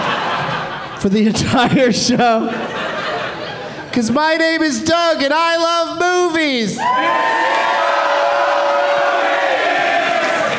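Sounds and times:
laughter: 0.0s - 4.0s
speech: 1.0s - 3.0s, 3.9s - 7.7s
live show audience cheering and shouting: 6.8s - 10.5s.

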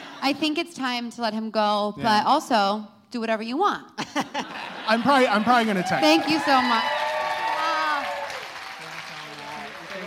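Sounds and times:
speech: 0.2s - 7.0s
laughter: 4.0s - 6.1s
audience applause: 5.3s - 10.0s.

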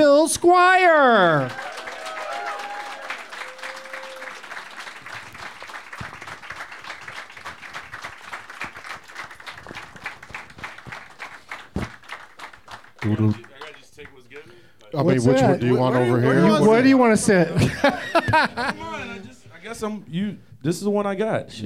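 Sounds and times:
speech: 0.0s - 1.7s, 13.1s - 13.5s, 15.0s - 19.1s, 19.7s - 21.6s
audience applause welcoming guests: 1.3s - 14.4s
laughter: 15.6s - 19.4s.

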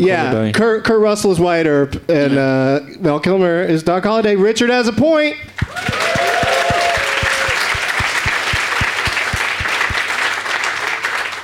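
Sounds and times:
speech: 0.0s - 6.6s
steady rhythmic thump: 5.4s - 10.4s
live audience applause: 5.6s - 11.4s.

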